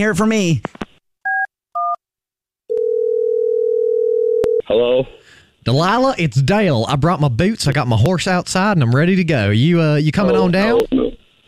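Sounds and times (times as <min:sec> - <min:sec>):
speech: 0:00.0 - 0:00.8, 0:04.7 - 0:11.0
telephone dial tone while dialing extension: 0:02.7 - 0:04.6.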